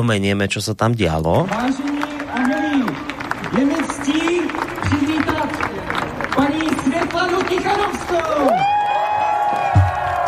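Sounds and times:
speech: 0:00.0 - 0:04.3
crowd applauding in a city square: 0:01.2 - 0:10.2
voices cheering and shouting: 0:02.2 - 0:03.8, 0:07.4 - 0:10.2.

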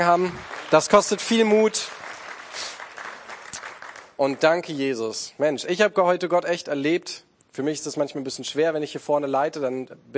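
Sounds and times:
speech: 0:00.0 - 0:02.0, 0:04.2 - 0:10.1
audience applause: 0:00.0 - 0:04.5.

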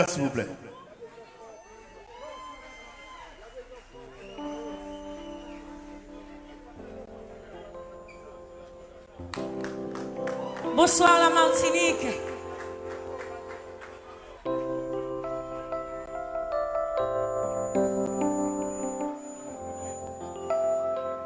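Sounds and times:
speech: 0:00.0 - 0:00.7, 0:10.8 - 0:12.3
crowd cheering and chatter: 0:00.0 - 0:16.3
audience applause: 0:01.6 - 0:05.6, 0:09.4 - 0:11.0, 0:12.2 - 0:14.6
steady sustained musical tones: 0:03.9 - 0:21.2.

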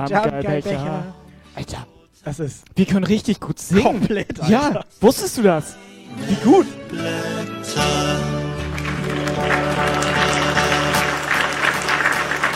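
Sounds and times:
speech: 0:00.0 - 0:08.2
sustained tonal musical backdrop: 0:05.6 - 0:12.5
person clapping: 0:08.7 - 0:12.5.

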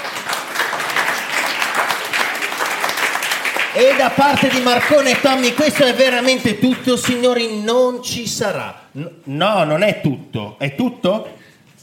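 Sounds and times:
crowd applause: 0:00.0 - 0:06.4
speech: 0:03.8 - 0:11.8.

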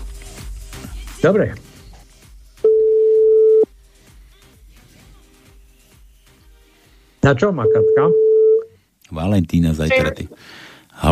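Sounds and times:
speech: 0:01.2 - 0:01.7, 0:07.2 - 0:08.2, 0:09.1 - 0:11.1
telephone tone while a call is placed: 0:02.7 - 0:03.7, 0:07.6 - 0:08.7.

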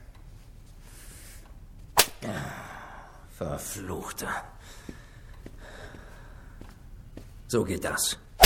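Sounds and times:
backhand slap across the face with the right hand: 0:02.0 - 0:02.2
speech: 0:03.4 - 0:04.9, 0:07.5 - 0:08.2.

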